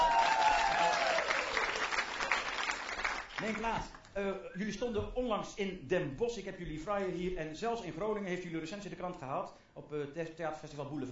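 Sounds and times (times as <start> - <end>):
crowd thunderous applause: 0.0 - 3.6
speech: 3.5 - 11.0.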